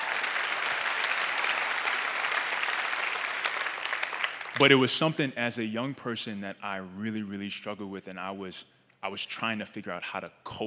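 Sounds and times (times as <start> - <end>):
audience clapping: 0.0 - 4.8
speech: 4.6 - 10.6.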